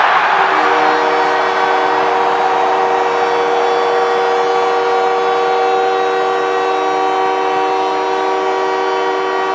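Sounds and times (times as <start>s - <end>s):
hockey crowd roaring after a goal: 0.0s - 7.5s
goal horn: 0.0s - 9.5s.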